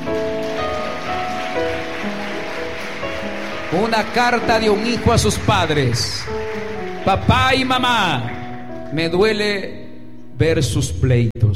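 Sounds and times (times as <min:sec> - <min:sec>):
audience applause: 0:00.0 - 0:08.9
speech: 0:03.7 - 0:06.4, 0:07.0 - 0:09.8, 0:10.4 - 0:11.5.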